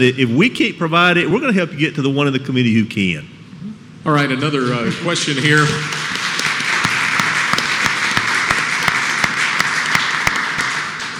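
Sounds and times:
speech: 0:00.0 - 0:03.4, 0:04.0 - 0:06.0
audience applause: 0:05.9 - 0:11.1.

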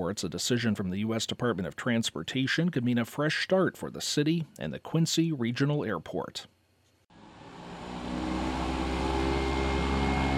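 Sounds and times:
speech: 0:00.0 - 0:06.6
airplanes taking off outside airport: 0:07.2 - 0:10.3.

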